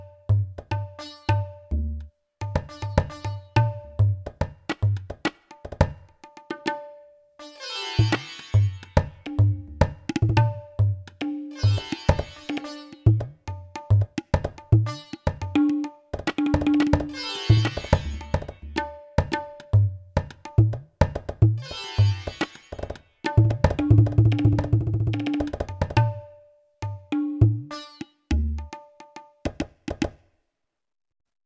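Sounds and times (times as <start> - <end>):
tabla kit on an electronic drum pad: 0.0 - 6.9, 8.0 - 30.2.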